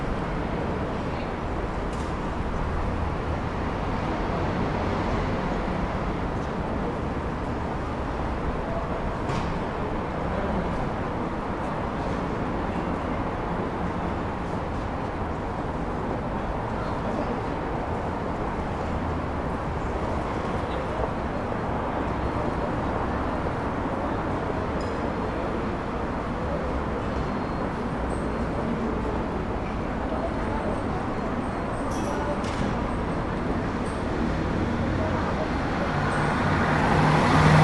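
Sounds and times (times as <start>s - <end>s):
daytime side street ambience in Vienna Austria: 0.0s - 37.6s.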